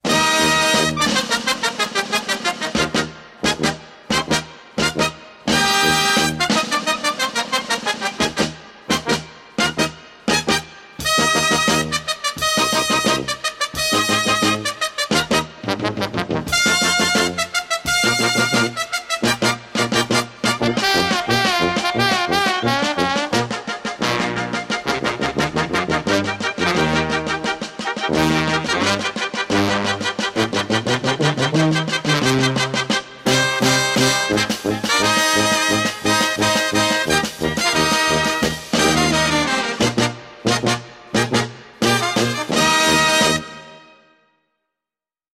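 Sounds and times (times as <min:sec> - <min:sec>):
circus music: 0:00.0 - 0:43.9.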